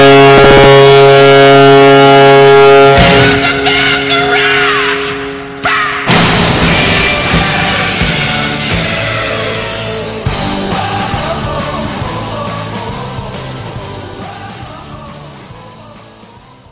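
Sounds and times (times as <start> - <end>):
goal horn: 0.0 - 9.9.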